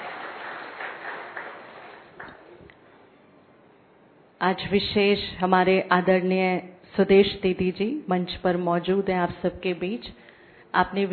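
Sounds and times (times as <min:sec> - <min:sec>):
loud applause: 0:00.0 - 0:02.6
speech: 0:04.4 - 0:11.1.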